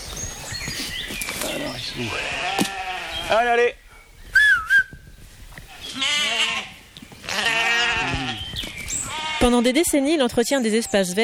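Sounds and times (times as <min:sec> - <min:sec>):
speech: 0:01.6 - 0:02.7, 0:03.3 - 0:03.8, 0:09.4 - 0:11.2
sheep bleating while grazing: 0:02.0 - 0:03.5, 0:05.8 - 0:09.7
wavering whistle: 0:04.3 - 0:05.0.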